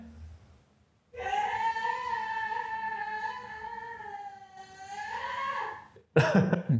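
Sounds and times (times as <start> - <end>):
person screaming: 1.2 - 5.9.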